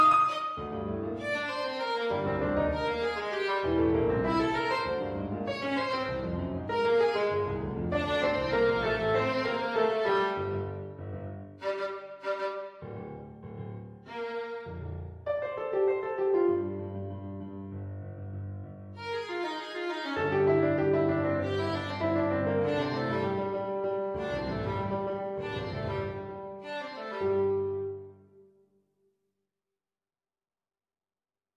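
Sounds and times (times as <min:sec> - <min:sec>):
violin vignette: 0:00.0 - 0:11.0, 0:11.6 - 0:13.1, 0:14.0 - 0:16.9, 0:18.9 - 0:28.2.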